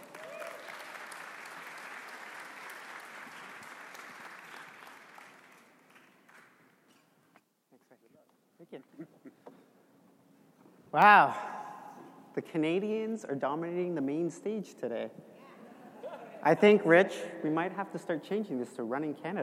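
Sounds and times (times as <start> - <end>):
audience applause welcoming a speaker onto a business event stage: 0.0 - 7.0
speech: 8.7 - 9.6, 10.9 - 11.5, 12.4 - 15.2, 16.4 - 19.4.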